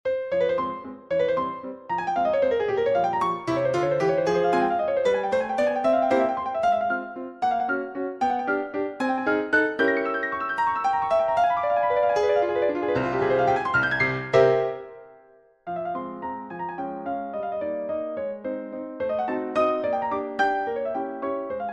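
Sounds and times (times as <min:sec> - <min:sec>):
agitato piano piece: 0:00.0 - 0:21.7.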